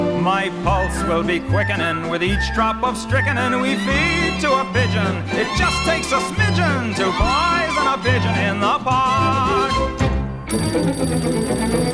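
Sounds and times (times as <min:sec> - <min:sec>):
speech: 0:00.2 - 0:11.9
telephone bell ringing: 0:10.5 - 0:11.9.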